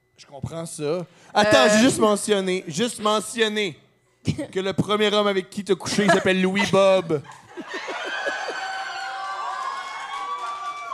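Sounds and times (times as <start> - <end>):
speech: 0.2 - 7.9
laughter: 5.9 - 9.2
audience applauding: 7.8 - 10.9.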